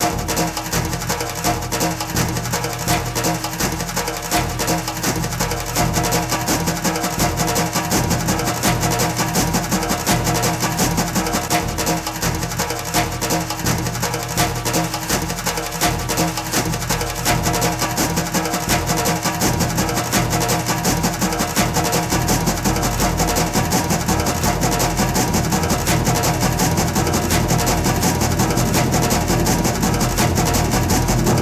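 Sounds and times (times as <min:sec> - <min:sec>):
fight percussion: 0:00.0 - 0:31.4.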